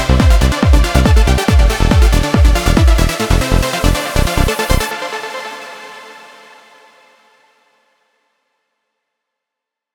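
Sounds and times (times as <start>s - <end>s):
catchy trance music melody: 0.0s - 6.7s.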